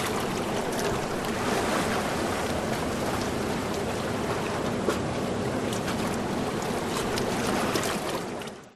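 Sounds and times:
shallow distant surf: 0.0 - 8.4
ocean waves lapping under and around rocks: 0.0 - 8.7.

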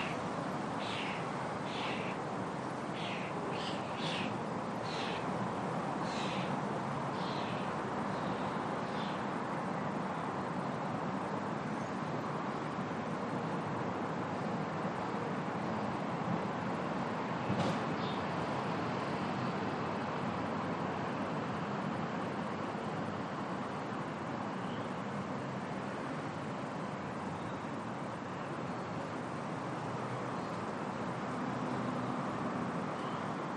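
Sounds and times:
afternoon birds in a residential area: 0.0 - 9.3
distant traffic: 0.0 - 33.5.

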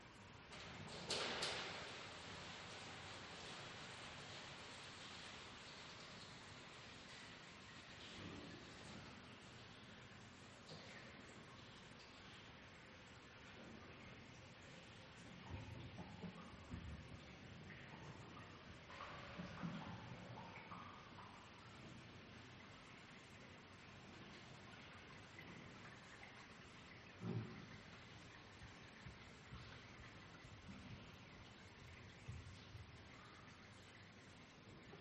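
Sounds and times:
pipes dripping in a garage: 0.1 - 34.9.

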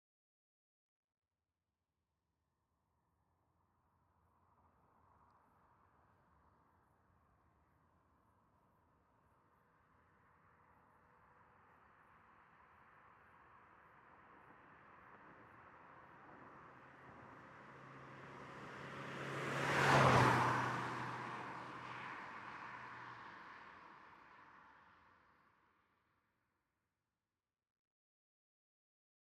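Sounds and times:
Mondeo car driving by at 40mph: 16.9 - 23.5.

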